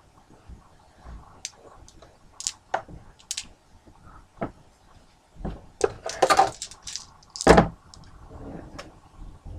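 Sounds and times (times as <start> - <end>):
dice rattling across a hard surface: 1.9 - 2.6, 3.2 - 3.5, 5.8 - 8.1.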